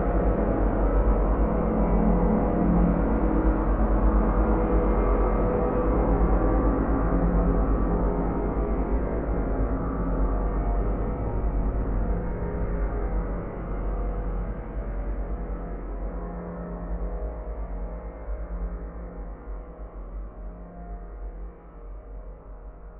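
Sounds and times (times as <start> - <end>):
dark swirling horror drone: 0.0 - 22.9.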